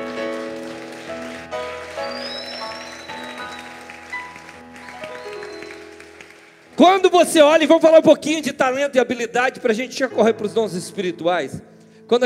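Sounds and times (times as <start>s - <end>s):
audience applauding loudly: 0.0s - 7.6s
speech: 6.8s - 12.2s.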